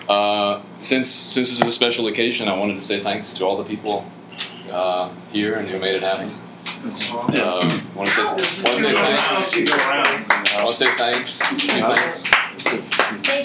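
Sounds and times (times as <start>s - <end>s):
speech: 0.1s - 13.4s
audience round of applause: 8.1s - 13.4s.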